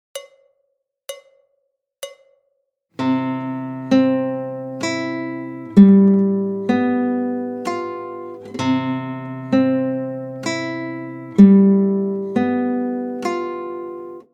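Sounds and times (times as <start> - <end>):
guitar changing between C and G7 chords: 3.0 - 14.3.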